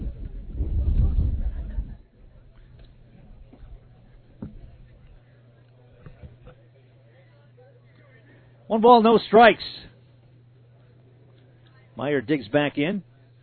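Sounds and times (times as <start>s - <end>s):
wind buffeting a field microphone at a baseball game: 0.0s - 2.0s
speech: 8.7s - 9.9s, 12.0s - 13.1s.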